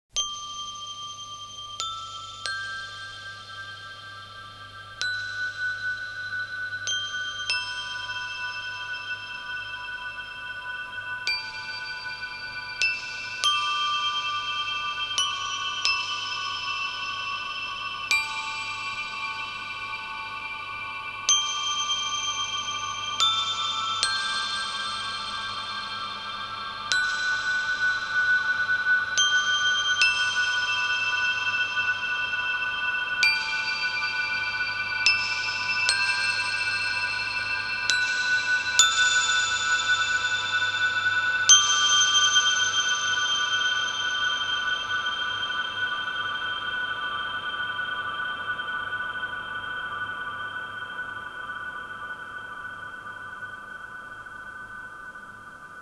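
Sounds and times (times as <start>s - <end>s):
chorale: 0.1s - 55.8s.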